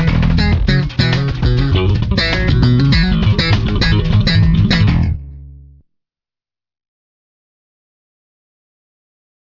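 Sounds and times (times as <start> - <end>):
bass: 0.0 - 5.9.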